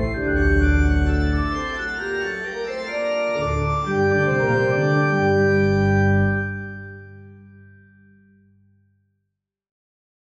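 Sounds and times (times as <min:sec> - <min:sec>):
organ prelude: 0:00.0 - 0:08.0.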